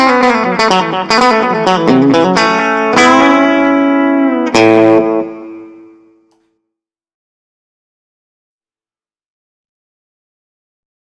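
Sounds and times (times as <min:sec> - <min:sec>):
country twang music: 0:00.0 - 0:06.2.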